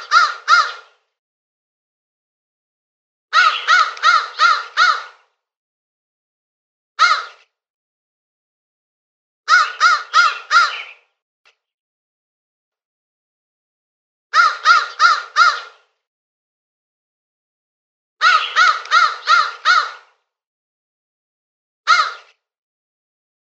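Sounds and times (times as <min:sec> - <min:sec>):
crow cawing: 0:00.0 - 0:01.0, 0:03.3 - 0:05.3, 0:07.0 - 0:07.4, 0:09.5 - 0:11.0, 0:14.3 - 0:15.9, 0:18.2 - 0:20.2, 0:21.9 - 0:22.4.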